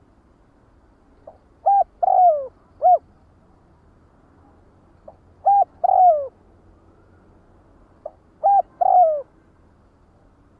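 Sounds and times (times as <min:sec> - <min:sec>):
spotted dove cooing: 0:01.6 - 0:03.1, 0:05.1 - 0:06.4, 0:08.0 - 0:09.3.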